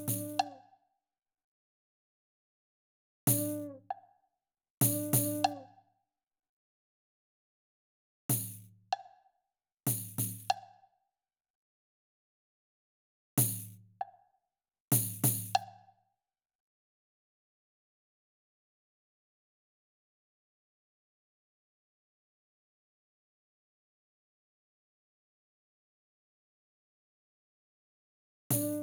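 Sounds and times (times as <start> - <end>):
percussion: 0.0 - 0.7, 3.3 - 4.1, 4.8 - 5.8, 8.3 - 9.2, 9.9 - 10.8, 13.4 - 14.2, 14.9 - 15.9, 28.5 - 28.8.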